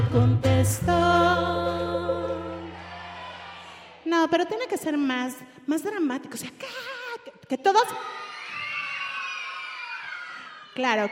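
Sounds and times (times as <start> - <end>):
speech: 0.2 - 1.7, 4.2 - 8.2, 10.8 - 11.1
large crowd cheering and shouting: 1.8 - 4.1, 7.9 - 11.1.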